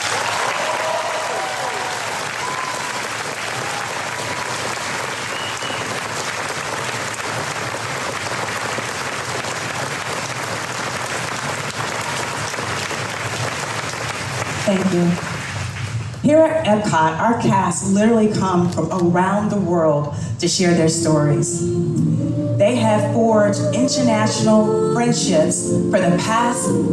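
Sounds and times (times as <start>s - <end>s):
audience round of applause: 0.0s - 16.2s
speech: 14.7s - 15.3s, 16.3s - 26.9s.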